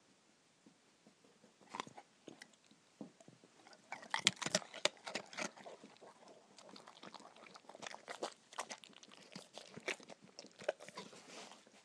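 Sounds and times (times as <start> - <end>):
dog eating treats sloppily: 1.7 - 2.6, 3.6 - 11.8.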